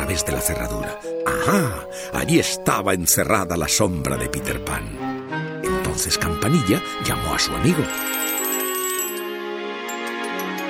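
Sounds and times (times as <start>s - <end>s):
speech: 0.1s - 8.2s
small bell tinkling: 7.8s - 10.6s.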